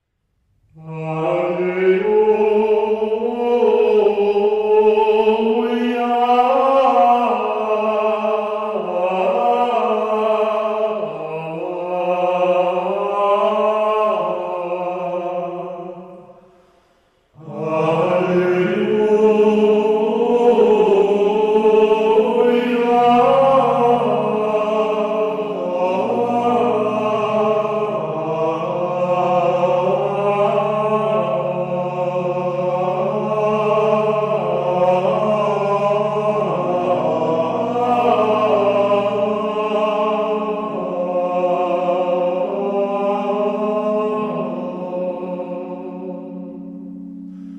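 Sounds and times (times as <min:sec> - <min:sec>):
solo voice singing alleluia: 0:00.7 - 0:16.4, 0:17.4 - 0:47.5.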